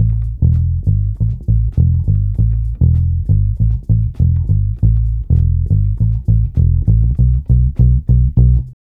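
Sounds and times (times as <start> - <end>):
ambient groove bass loop: 0.0 - 8.8.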